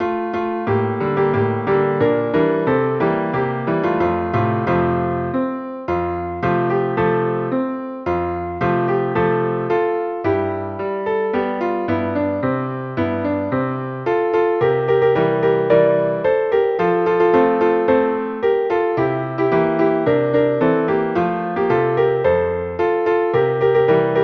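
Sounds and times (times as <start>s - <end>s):
Christmas piano piece: 0.0s - 24.2s.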